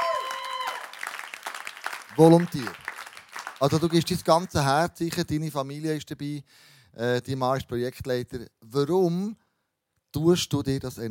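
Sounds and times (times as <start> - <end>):
audience applause: 0.0 - 4.5
speech: 2.2 - 2.8, 3.6 - 9.4, 10.1 - 11.1.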